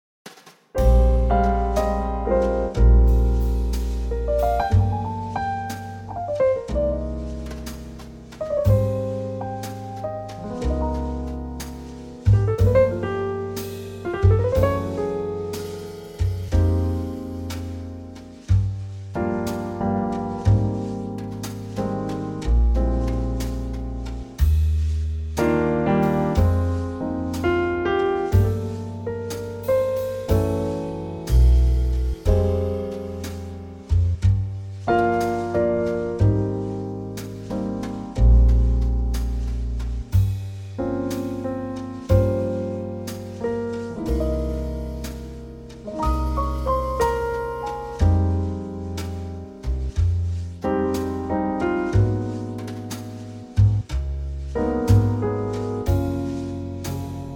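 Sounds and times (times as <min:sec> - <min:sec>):
musical trio: 0:00.3 - 0:57.3.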